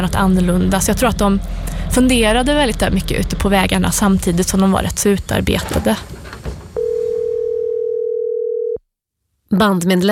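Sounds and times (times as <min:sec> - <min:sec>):
speech: 0:00.0 - 0:06.2, 0:09.5 - 0:10.1
telephone dial tone: 0:06.8 - 0:08.8.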